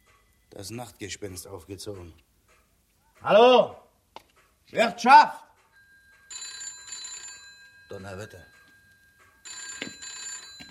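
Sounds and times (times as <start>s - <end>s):
speech: 0.5s - 2.3s, 3.2s - 3.8s, 4.7s - 5.4s, 7.9s - 8.5s
telephone ringing: 5.8s - 10.6s.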